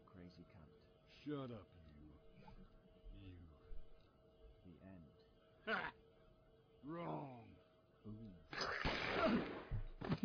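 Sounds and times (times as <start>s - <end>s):
speech: 0.3s - 1.8s, 4.7s - 6.0s, 6.8s - 9.5s
gunfire sound effect: 8.5s - 10.2s.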